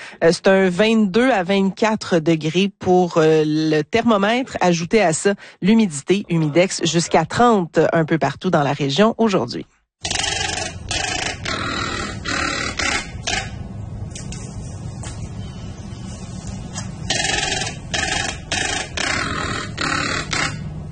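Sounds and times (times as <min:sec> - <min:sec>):
speech: 0:00.1 - 0:10.2
harsh buzzy bird call: 0:10.0 - 0:13.6, 0:15.2 - 0:20.8.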